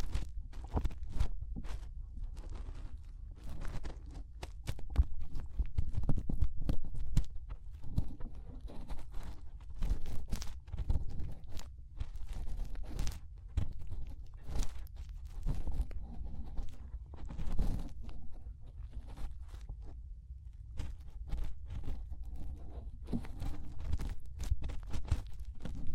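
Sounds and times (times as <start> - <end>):
fingers rubbing and pressing inside an ear: 0.0 - 20.0, 20.7 - 25.9.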